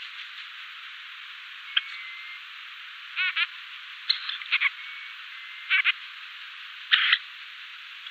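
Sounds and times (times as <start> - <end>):
female ruff arched whistles: 1.7 - 2.4, 4.1 - 5.8.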